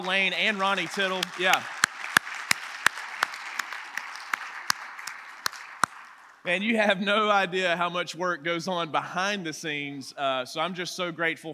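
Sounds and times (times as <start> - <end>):
speech: 0.0 - 1.8, 6.4 - 11.5
audience round of applause: 0.0 - 6.4.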